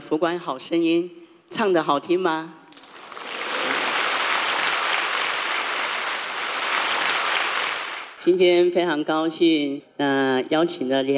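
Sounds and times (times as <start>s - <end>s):
speech: 0.1s - 2.6s, 8.2s - 11.1s
warm applause for eight singers at the Buddha Museum: 2.7s - 8.3s.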